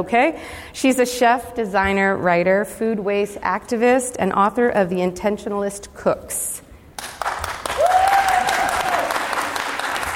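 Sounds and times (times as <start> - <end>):
speech: 0.0 - 6.6
crowd applauding: 7.0 - 10.1.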